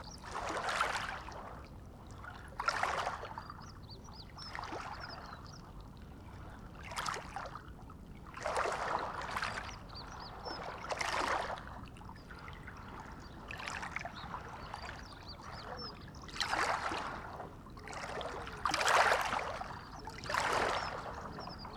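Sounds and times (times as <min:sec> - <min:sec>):
waves: 0:00.0 - 0:21.7.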